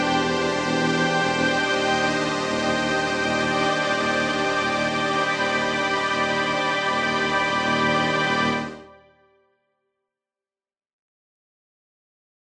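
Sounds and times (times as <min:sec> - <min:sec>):
ARP Solina string synthesizer: 0:00.0 - 0:09.1.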